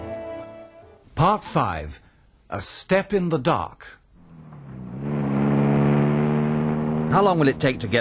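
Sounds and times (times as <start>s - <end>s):
speech: 1.2s - 4.0s, 7.1s - 7.9s
car engine humming as a chauffeur drives: 4.2s - 7.9s.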